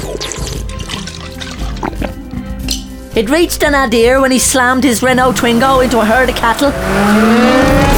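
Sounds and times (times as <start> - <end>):
gulping liquid from a bottle: 0.0 - 2.5
speech: 3.2 - 7.8.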